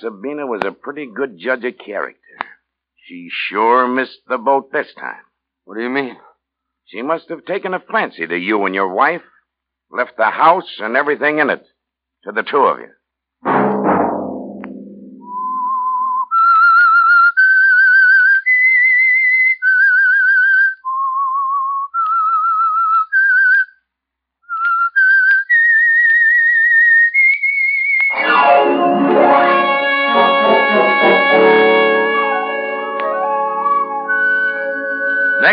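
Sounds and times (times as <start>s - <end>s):
speech: 0.0s - 6.3s, 6.9s - 9.3s, 9.9s - 13.9s
whistled theme melody: 15.2s - 23.8s, 24.5s - 35.5s
full orchestral music: 28.1s - 35.5s.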